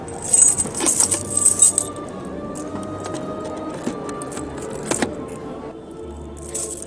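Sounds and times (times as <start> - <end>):
keys jangling as they are tried on a row of locks: 0.0 - 2.0, 2.6 - 5.4, 6.4 - 6.8
scattered rattles and clicks: 0.2 - 1.9, 2.6 - 5.3.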